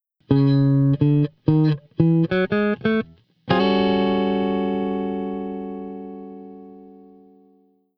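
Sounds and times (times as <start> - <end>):
blues guitar: 0.2 - 7.7.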